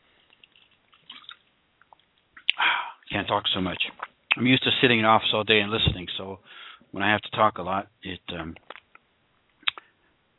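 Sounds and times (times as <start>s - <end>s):
person drinking water: 0.2s - 3.1s
speech: 3.2s - 8.6s.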